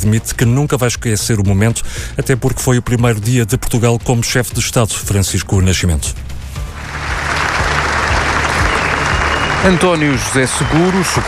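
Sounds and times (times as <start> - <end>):
speech: 0.0 - 6.4, 9.6 - 11.2
large crowd applauding: 6.7 - 11.2.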